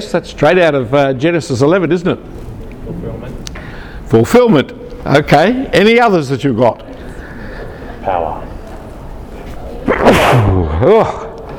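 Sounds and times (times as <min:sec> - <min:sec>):
speech: 0:00.0 - 0:03.4, 0:04.1 - 0:06.9, 0:08.0 - 0:08.5, 0:09.9 - 0:11.2
short rising-and-falling vocal sound: 0:09.8 - 0:11.4
sneeze: 0:09.9 - 0:11.2.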